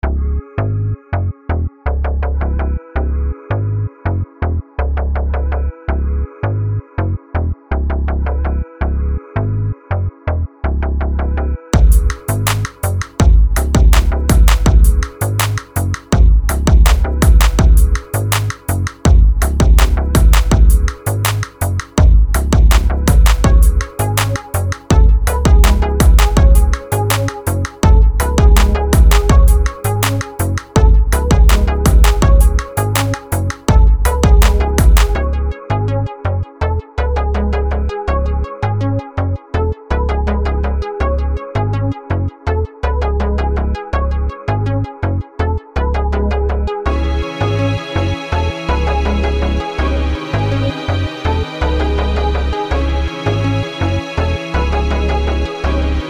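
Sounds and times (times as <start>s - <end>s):
dark melody: 0.0s - 56.0s.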